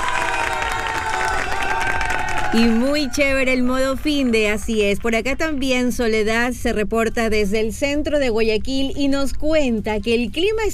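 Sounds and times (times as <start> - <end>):
crowd clapping: 0.0 - 3.1
crowd whooping and shouting: 0.0 - 3.6
speech: 2.5 - 10.7.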